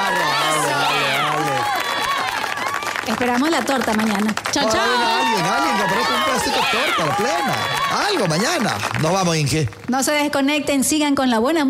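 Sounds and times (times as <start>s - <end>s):
crowd cheering and shouting at a farewell celebration for taxi drivers: 0.0s - 3.2s, 4.6s - 9.2s
speech: 3.2s - 11.6s.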